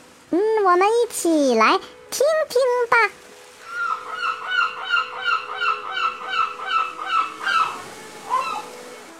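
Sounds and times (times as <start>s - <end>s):
speech: 0.7s - 3.3s
seagull calls: 3.6s - 8.8s.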